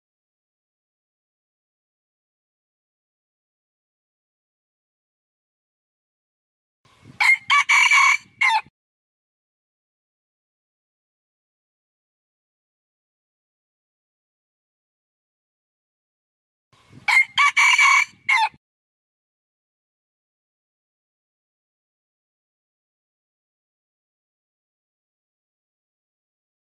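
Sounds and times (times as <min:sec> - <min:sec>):
red junglefowl crowing: 0:07.2 - 0:08.7, 0:17.1 - 0:18.6.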